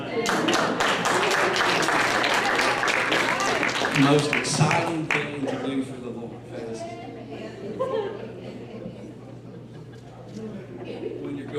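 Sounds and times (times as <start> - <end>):
audience hand claps: 0.1 - 5.4
speech: 4.0 - 8.2
laughter: 7.0 - 11.5.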